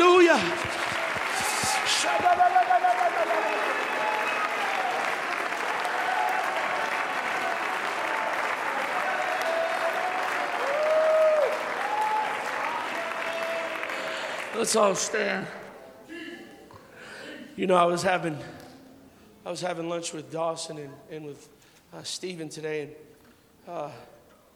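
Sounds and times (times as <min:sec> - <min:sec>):
congregation clapping across the sanctuary: 0:00.0 - 0:15.6
speech: 0:14.6 - 0:15.6, 0:17.6 - 0:18.6, 0:19.4 - 0:24.2.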